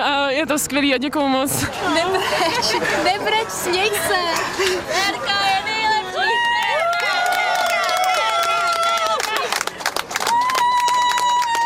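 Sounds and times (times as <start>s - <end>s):
speech: 0.4s - 5.7s
laughter: 1.6s - 5.3s
excited whoops and shouts: 6.1s - 9.2s, 10.2s - 11.6s
crowd clapping and cheering: 6.2s - 11.6s.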